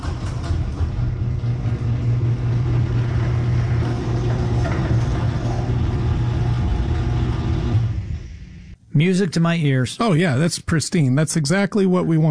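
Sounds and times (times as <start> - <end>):
motorized door running on nylon rollers: 0.0 - 8.8
speech: 9.0 - 12.2.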